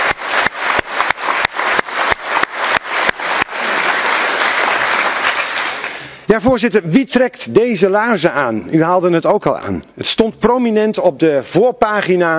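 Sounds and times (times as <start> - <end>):
audience applause in a large hall: 0.0 - 6.3
speech: 6.4 - 12.3.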